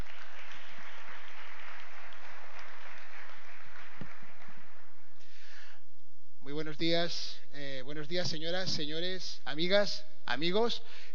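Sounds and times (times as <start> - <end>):
audience applause: 0.0 - 5.2
speech: 6.8 - 11.1.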